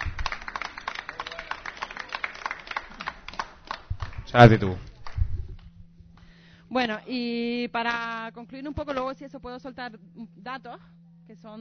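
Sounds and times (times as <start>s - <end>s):
scattered applause from a small audience at a talk: 0.0s - 5.2s
speech: 4.3s - 4.9s, 6.9s - 11.5s.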